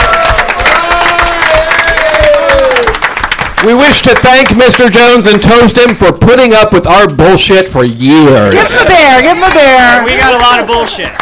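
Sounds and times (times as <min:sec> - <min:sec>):
cheering and shouting voices: 0:00.0 - 0:03.0, 0:08.5 - 0:11.2
crowd applause: 0:00.0 - 0:06.0, 0:08.6 - 0:11.2
speech: 0:03.6 - 0:11.2.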